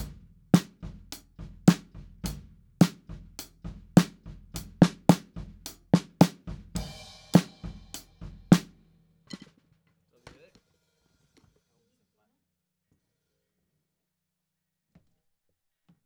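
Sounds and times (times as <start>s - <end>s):
snare drum top: 0.0s - 0.8s, 1.7s - 1.9s, 2.8s - 3.0s, 4.0s - 8.7s.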